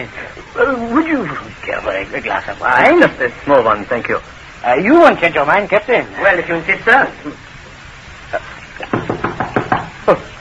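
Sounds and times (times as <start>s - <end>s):
speech: 0.0s - 7.4s, 10.1s - 10.3s
knocking on a wooden door: 8.9s - 10.0s.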